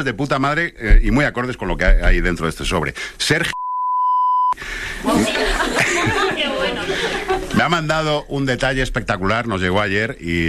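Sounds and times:
speech: 0.0s - 3.6s, 4.6s - 10.4s
censor beep over a man's surname: 3.5s - 4.6s
lively voices: 4.6s - 8.8s
laughter: 5.0s - 7.6s.

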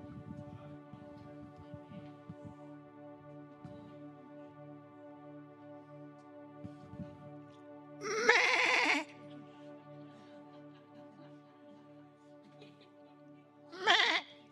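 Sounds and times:
sheep bleating: 8.0s - 9.1s, 13.8s - 14.3s
laughter: 8.0s - 14.5s.

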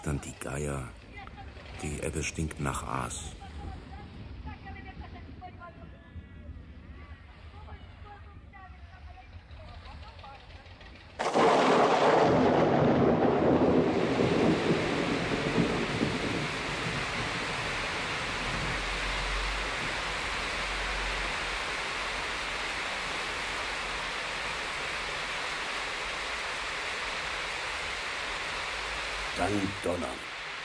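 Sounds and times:
speech: 0.0s - 1.0s, 1.8s - 3.4s
heavy rain: 0.0s - 8.2s, 11.2s - 30.6s
thunder: 11.2s - 21.6s.

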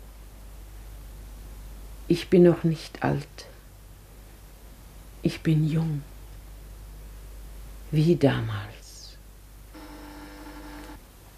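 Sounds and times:
constant hiss: 0.0s - 11.3s
speech: 2.1s - 3.5s, 5.2s - 6.1s, 7.9s - 8.8s
telephone ringing in a radio drama: 9.8s - 11.0s.

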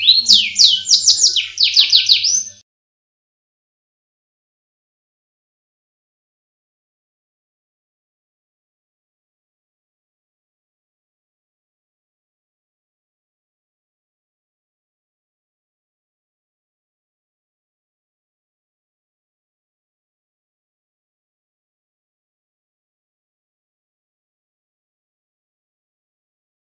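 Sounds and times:
Oriental magpie-robin song with downslurred chirps and trills: 0.0s - 2.6s.

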